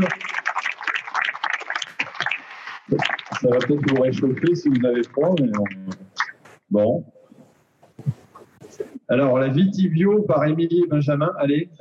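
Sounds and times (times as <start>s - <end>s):
speech: 0.0s - 0.4s, 2.9s - 6.0s, 6.7s - 7.2s, 9.1s - 11.7s
audience applause: 0.0s - 6.0s.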